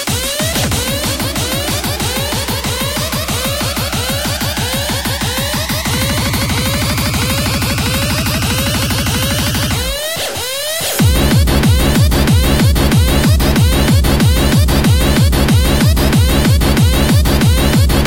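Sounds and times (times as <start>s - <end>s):
cartoon bass sound: 0.1s - 17.9s.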